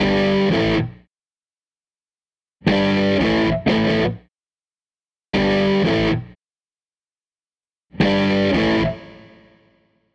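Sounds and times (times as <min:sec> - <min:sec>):
guitar loop: 0:00.0 - 0:01.0, 0:02.6 - 0:04.2, 0:05.4 - 0:06.4, 0:07.9 - 0:09.5.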